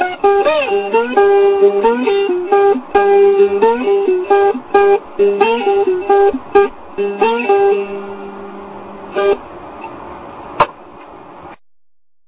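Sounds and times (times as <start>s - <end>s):
lap ukulele playing: 0.0s - 9.5s.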